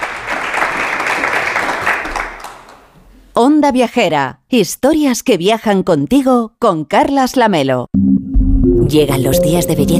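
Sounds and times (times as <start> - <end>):
live audience applause: 0.0 - 2.9
speech: 3.4 - 8.1, 8.9 - 9.9.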